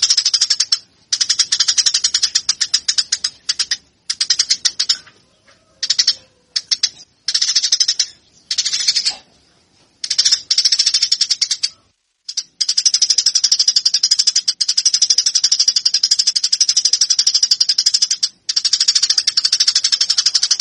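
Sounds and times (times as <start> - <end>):
Eurasian tree sparrow fighting call with rapid harsh chirps: 0.0 - 20.5.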